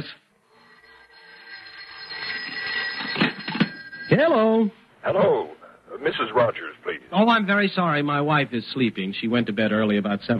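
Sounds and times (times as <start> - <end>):
electric telephone bell ringing: 0.0 - 4.8
speech: 4.1 - 10.3.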